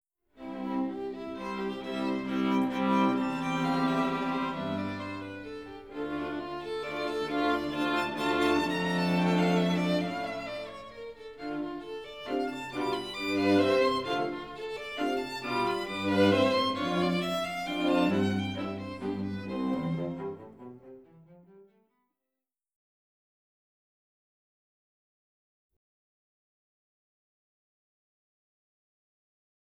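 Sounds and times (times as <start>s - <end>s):
string quartet in F major: 0.4s - 21.8s.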